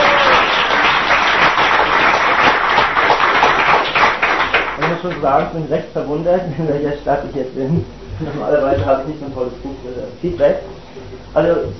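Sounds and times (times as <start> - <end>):
audience applause: 0.0 - 5.2
speech: 5.0 - 11.7.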